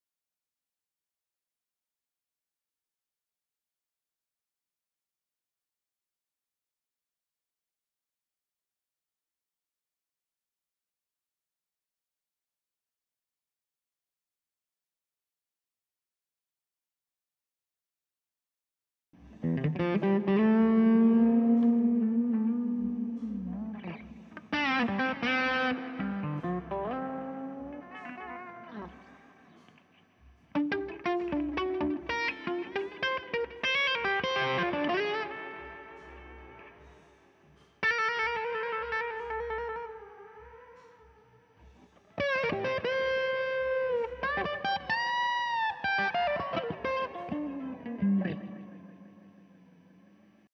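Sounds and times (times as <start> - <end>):
guitar: 19.2 - 37.1, 37.8 - 50.4.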